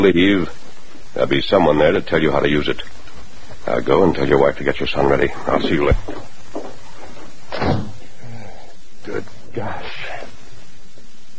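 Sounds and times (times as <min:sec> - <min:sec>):
speech: 0:00.0 - 0:03.0, 0:03.6 - 0:06.3, 0:09.6 - 0:10.2
door thudding shut: 0:07.5 - 0:08.0.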